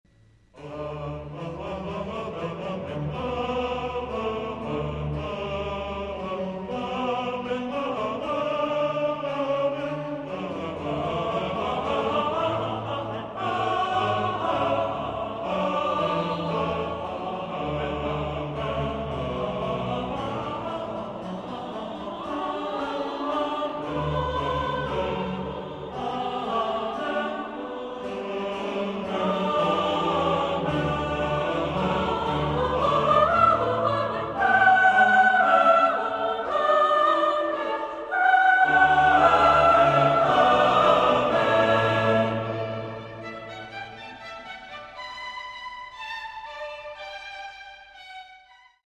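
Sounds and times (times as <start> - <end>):
singing in German, amen: 0.5 - 48.6.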